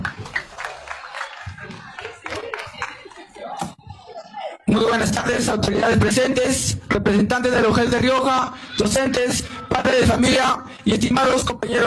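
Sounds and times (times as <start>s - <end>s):
audience applause: 0.0s - 3.6s
speech: 4.7s - 11.8s.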